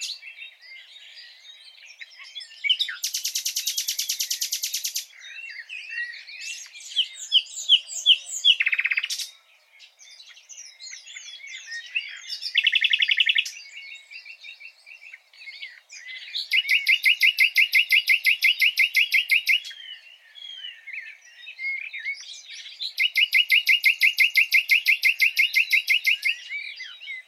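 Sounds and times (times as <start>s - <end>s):
common nightingale song: 0.0s - 27.2s.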